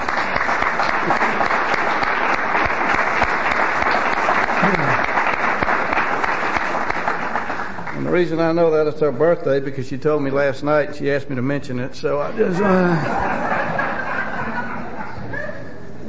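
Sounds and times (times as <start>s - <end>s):
round of applause: 0.0s - 8.2s
laughter: 4.4s - 5.2s, 12.3s - 15.9s
speech: 8.2s - 13.5s.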